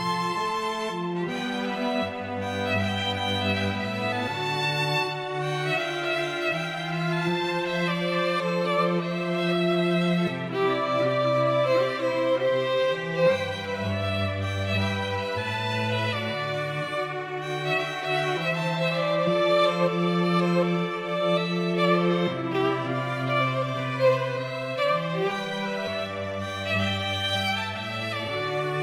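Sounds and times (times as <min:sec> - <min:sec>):
string trio playing: 0:00.0 - 0:28.8.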